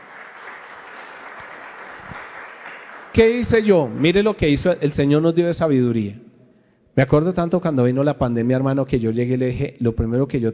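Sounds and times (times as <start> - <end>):
audience applause: 0.0 - 4.2
speech: 3.1 - 6.2, 7.0 - 10.5.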